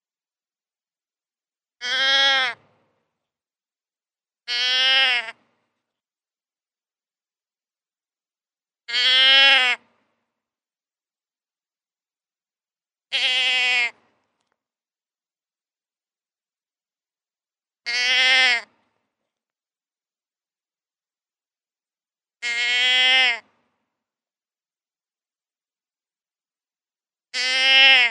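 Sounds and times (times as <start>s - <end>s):
deer bleating: 1.8s - 2.6s, 4.5s - 5.5s, 8.9s - 9.9s, 13.1s - 14.0s, 17.8s - 18.8s, 22.4s - 23.6s, 27.3s - 28.0s.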